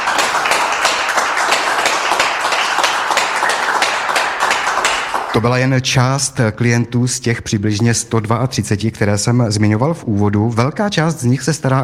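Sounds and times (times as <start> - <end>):
audience applause: 0.0 - 5.5
speech: 5.4 - 11.8.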